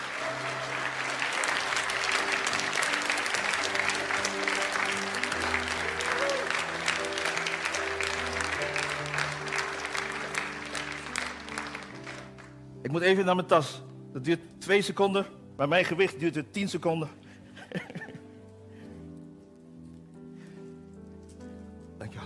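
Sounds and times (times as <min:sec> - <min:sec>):
audience applause: 0:00.0 - 0:12.6
speech: 0:12.9 - 0:18.0
laughter: 0:17.6 - 0:18.3.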